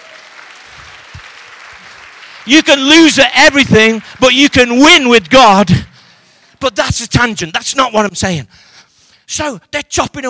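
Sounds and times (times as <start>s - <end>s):
audience clapping: 0.0s - 6.7s
speech: 2.5s - 5.9s, 6.6s - 8.7s, 9.3s - 10.2s.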